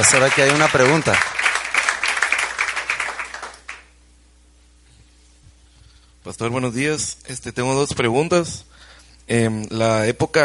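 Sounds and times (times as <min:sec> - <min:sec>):
speech: 0:00.0 - 0:01.5, 0:06.3 - 0:10.4
audience applause: 0:00.0 - 0:03.9.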